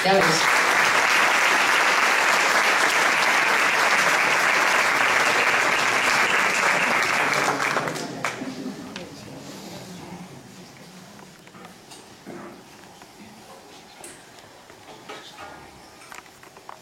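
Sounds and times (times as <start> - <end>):
audience applause: 0.0 - 8.7.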